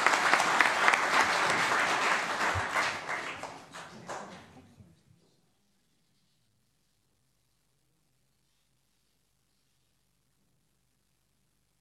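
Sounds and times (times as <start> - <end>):
crowd applause: 0.0 - 4.6.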